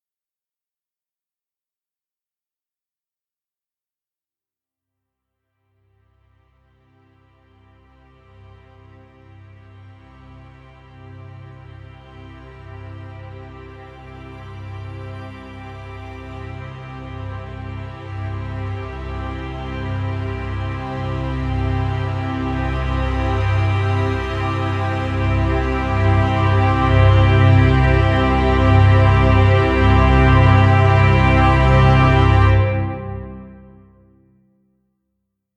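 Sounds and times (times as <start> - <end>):
mild horror orchestra climb: 8.7 - 34.2.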